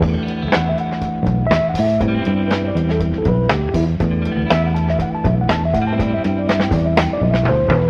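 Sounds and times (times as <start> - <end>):
phonk music loop: 0.0 - 7.8.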